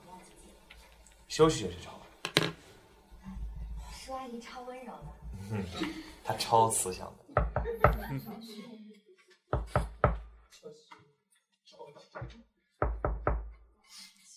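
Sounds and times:
speech: 1.3 - 2.0, 4.2 - 8.8
sharp heavy knocks on a door: 7.4 - 8.0, 9.5 - 10.4, 12.8 - 13.6.

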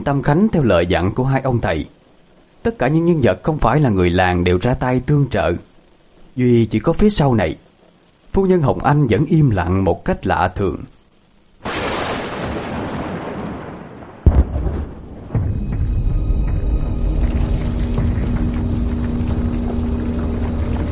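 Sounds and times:
speech: 0.0 - 2.0, 2.6 - 5.7, 6.4 - 7.7, 8.3 - 11.0
droning hum: 0.0 - 11.6, 14.3 - 20.9
loud explosion from inside a forest: 11.6 - 18.6
heavy boom as the ground shakes: 14.2 - 19.8
deep rumble: 14.3 - 20.9.

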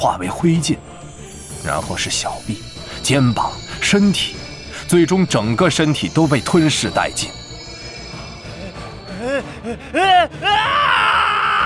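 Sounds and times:
speech: 0.0 - 1.0, 1.6 - 7.4
demon's shrill angry agonized scream: 10.4 - 11.6.

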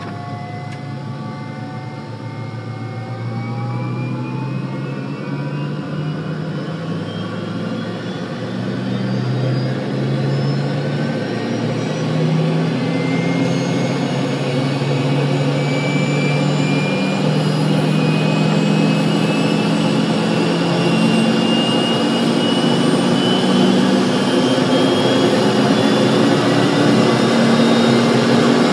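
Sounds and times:
dropship engines roaring during lift-off and flight: 0.0 - 28.7.

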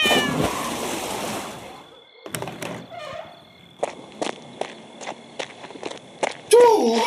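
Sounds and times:
cat yowling after being stepped on: 0.0 - 0.7
thudding footsteps: 2.3 - 6.5.

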